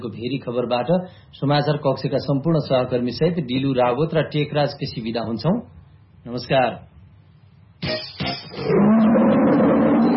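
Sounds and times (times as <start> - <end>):
speech: 0.0 - 6.9, 7.8 - 9.5
sharp bright impacts: 7.8 - 8.6
tiger roaring with a deep rough growl: 8.6 - 10.1.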